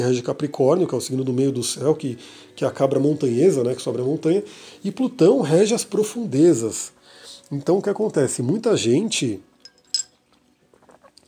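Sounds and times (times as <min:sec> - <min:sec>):
speech: 0:00.0 - 0:09.5
glass clink: 0:09.6 - 0:10.3.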